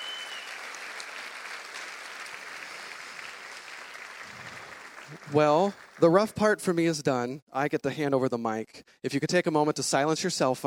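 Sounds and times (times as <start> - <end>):
audience applause: 0.0 - 6.4
speech: 5.1 - 10.6.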